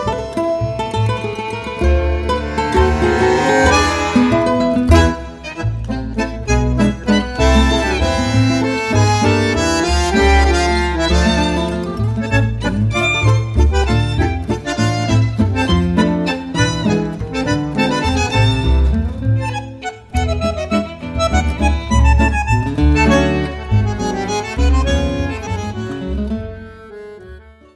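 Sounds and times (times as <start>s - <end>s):
waltz music: 0.0s - 27.7s.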